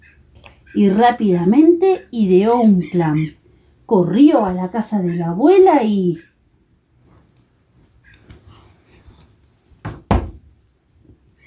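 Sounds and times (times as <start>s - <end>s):
speech: 0.7s - 6.3s
knocking on a wooden door: 9.8s - 10.5s.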